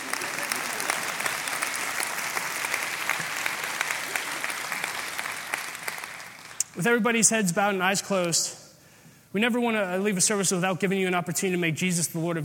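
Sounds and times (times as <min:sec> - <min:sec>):
audience clapping: 0:00.0 - 0:06.8
speech: 0:06.8 - 0:08.6, 0:09.3 - 0:12.4.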